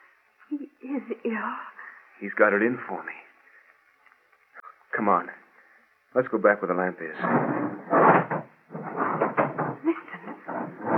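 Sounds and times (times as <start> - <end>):
speech: 0.9 - 3.2, 5.0 - 5.4, 6.1 - 8.5
door being barricaded: 7.2 - 10.9.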